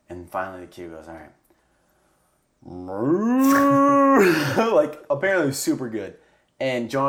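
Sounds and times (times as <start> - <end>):
speech: 0.3 - 1.4, 2.6 - 7.0
man imitating a cow's moo: 2.6 - 4.6.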